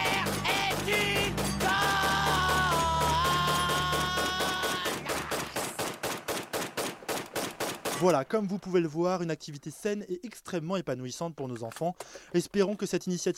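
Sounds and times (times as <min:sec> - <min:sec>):
machine gun firing: 0:00.0 - 0:09.2
speech: 0:08.0 - 0:13.3.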